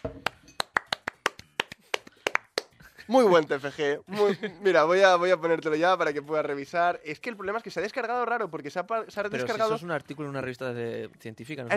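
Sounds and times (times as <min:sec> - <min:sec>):
brief hand clapping: 0:00.0 - 0:02.9
speech: 0:03.1 - 0:11.7.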